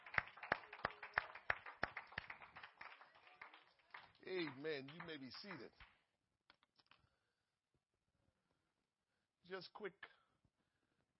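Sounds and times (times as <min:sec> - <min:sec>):
audience clapping hands in a rhythmic beat: 0:00.0 - 0:07.0
speech: 0:04.2 - 0:05.9, 0:09.5 - 0:10.1.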